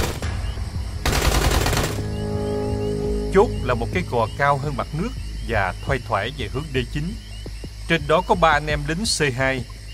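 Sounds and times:
low droning hum: 0.3 - 8.1
machine gun fire at a military outpost: 1.0 - 2.0
speech: 3.3 - 7.2, 7.9 - 9.7.

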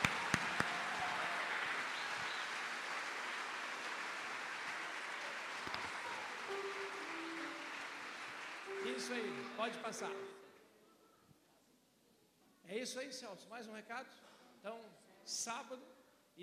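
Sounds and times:
audience applauding visitors: 0.0 - 10.4
speech: 9.0 - 10.4, 12.7 - 15.9.

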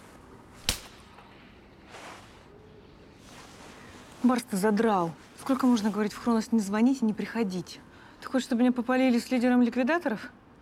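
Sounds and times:
low hum: 0.0 - 10.6
woman slapping a man across the face in a corridor: 0.6 - 1.1
soft rustling and breathy movement sounds: 1.2 - 6.2
speech: 4.2 - 10.4.

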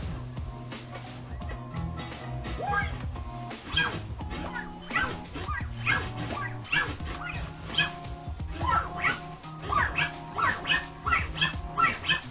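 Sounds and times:
DJ reverb scratch on a turntable: 0.0 - 12.2
steady musical backing: 0.0 - 12.2.

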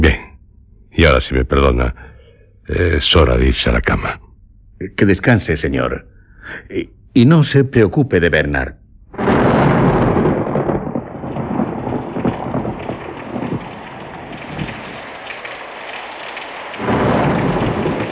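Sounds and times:
speech: 1.2 - 2.1, 2.7 - 4.2, 4.8 - 8.8
thunderstorm: 9.1 - 18.1
rain hitting a thick balcony railing: 10.4 - 18.1.

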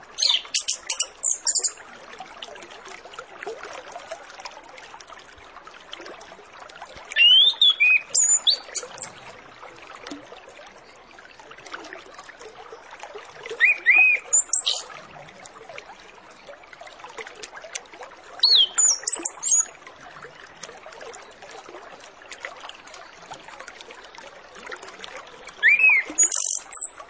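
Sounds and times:
Orange-headed Thrush whistling song: 7.2 - 9.0, 13.6 - 14.9, 18.4 - 19.7, 25.5 - 27.0.

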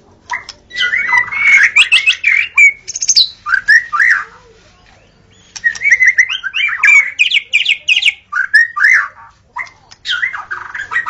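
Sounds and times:
white-rumped shama singing whistled phrases: 0.4 - 4.3, 5.0 - 9.2.

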